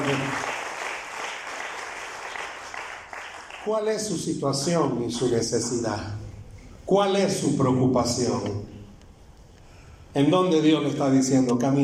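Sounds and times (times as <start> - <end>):
audience applause: 0.0 - 3.7
speech: 3.6 - 6.2, 6.9 - 8.7, 10.1 - 11.8.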